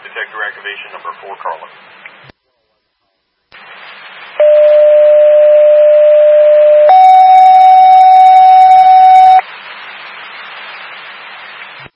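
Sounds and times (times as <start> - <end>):
radio static hiss: 0.0 - 4.7, 9.3 - 11.9
speech: 0.4 - 2.1
fire station dispatch alert tone over radio: 4.4 - 9.4.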